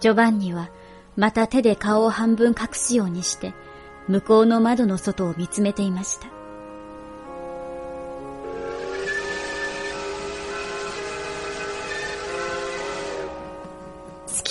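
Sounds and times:
speech: 0.0s - 6.4s
steam train whistle as train departs: 8.3s - 13.6s
rumbling train noise: 8.4s - 14.4s.

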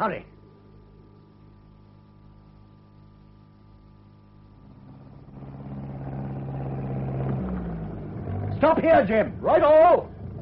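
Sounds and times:
speech: 0.0s - 0.4s, 8.6s - 10.2s
tractor engine droning: 4.5s - 10.4s.

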